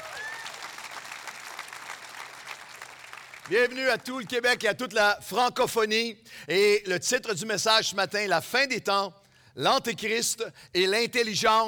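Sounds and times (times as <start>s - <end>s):
church congregation applauding to welcome remote sites: 0.0s - 4.3s
speech: 3.5s - 11.6s.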